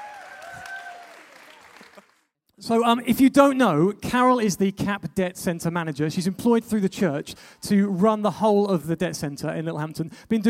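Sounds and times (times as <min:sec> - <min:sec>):
audience applause: 0:00.0 - 0:02.3
speech: 0:02.6 - 0:10.4.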